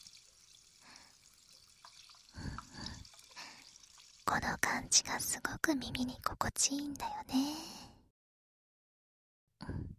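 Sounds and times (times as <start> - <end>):
fizzy drink being poured: 0.0 - 4.3
speech: 4.4 - 7.7.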